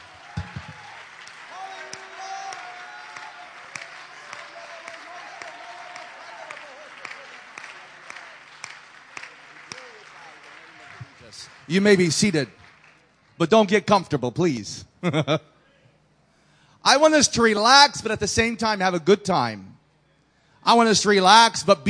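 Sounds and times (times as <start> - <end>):
audience clapping hands: 0.0 - 13.7
speech: 11.4 - 12.6, 13.4 - 15.5, 16.9 - 19.7, 20.6 - 21.8.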